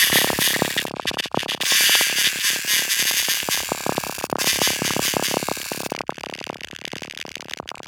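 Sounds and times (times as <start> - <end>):
insects: 0.0 - 6.0.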